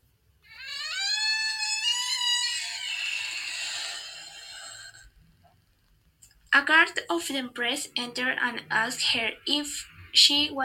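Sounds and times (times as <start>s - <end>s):
door screeching as it opens: 0.5s - 5.1s
speech: 6.6s - 10.6s.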